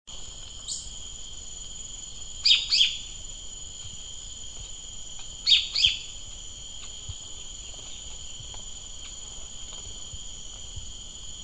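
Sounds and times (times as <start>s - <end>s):
bird chirps: 2.4s - 3.1s, 5.4s - 6.1s.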